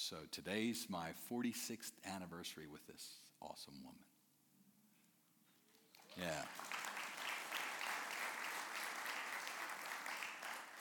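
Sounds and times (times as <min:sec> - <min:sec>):
speech: 0:00.1 - 0:04.1, 0:06.1 - 0:06.8
applause: 0:05.7 - 0:10.7.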